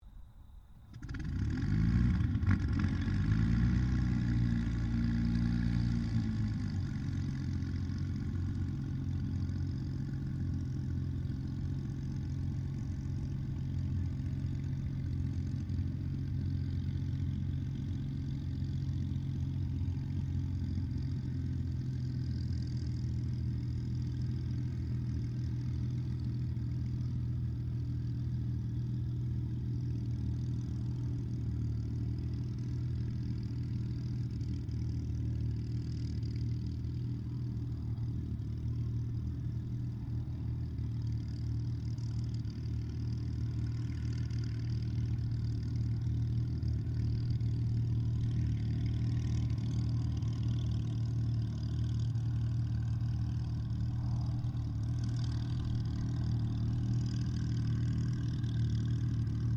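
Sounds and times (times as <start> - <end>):
distant 1944 Supermarine Spitfire Mk-XVI engine starting and idling: 0.0 - 59.5.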